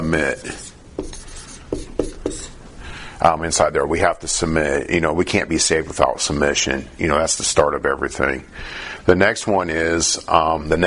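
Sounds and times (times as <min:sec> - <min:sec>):
speech: 0:00.1 - 0:00.7, 0:03.2 - 0:10.8
writing on a board: 0:00.4 - 0:02.6.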